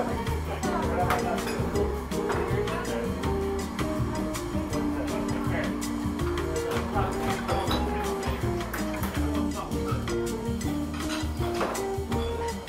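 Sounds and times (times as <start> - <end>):
murmur of voices in a seaside cafe: 0.0 - 10.8
cups and dishes clinking: 1.0 - 2.6, 6.3 - 10.1, 10.9 - 11.9.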